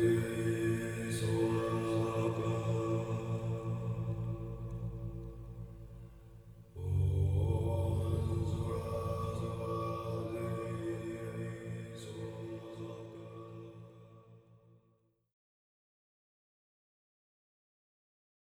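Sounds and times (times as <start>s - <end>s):
chanting: 0.0s - 6.0s, 6.7s - 14.4s.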